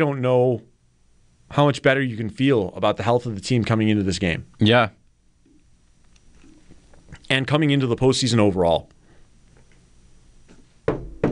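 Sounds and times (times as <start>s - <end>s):
speech: 0.0s - 0.7s, 1.5s - 5.0s, 7.3s - 9.0s
knuckles knocking on wood for luck: 10.9s - 11.3s.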